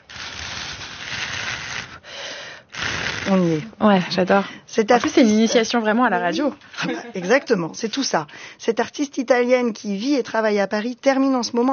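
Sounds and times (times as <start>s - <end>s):
blowing on paper strips to make wind: 0.0s - 3.7s
speech: 3.3s - 11.7s.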